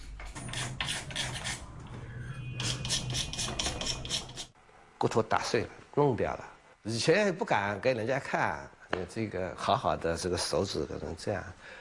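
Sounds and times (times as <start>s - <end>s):
carving tool scraping wood: 0.5s - 1.6s, 2.6s - 4.6s
speech: 5.0s - 11.7s.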